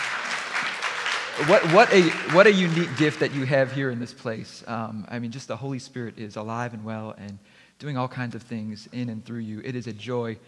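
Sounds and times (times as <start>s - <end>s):
audience applause for musicians: 0.0s - 4.0s
speech: 1.4s - 10.4s.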